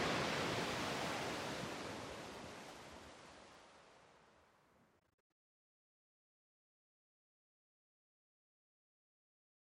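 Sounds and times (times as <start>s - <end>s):
ocean waves: 0.0s - 4.9s.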